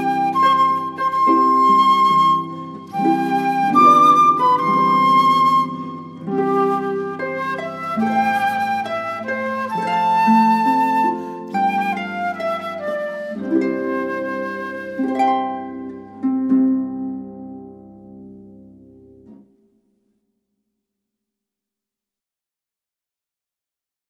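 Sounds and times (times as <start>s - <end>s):
flute: 0.0s - 16.6s
harp: 0.0s - 19.5s.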